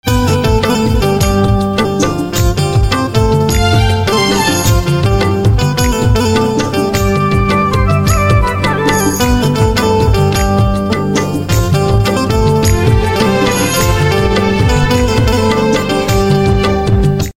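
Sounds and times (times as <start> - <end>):
banjo instrumental ringtone: 0.2 - 16.2.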